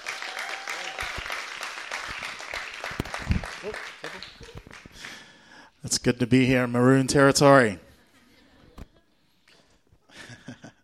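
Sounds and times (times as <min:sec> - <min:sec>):
crowd cheering: 0:00.0 - 0:05.2
audience applause welcoming a pastor at a Brisbane church gathering: 0:00.0 - 0:05.4
speech: 0:05.9 - 0:07.8.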